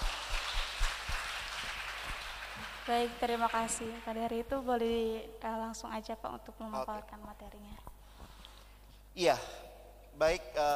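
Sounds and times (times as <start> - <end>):
audience applause: 0.0 - 4.2
speech: 2.9 - 7.9, 9.2 - 10.7.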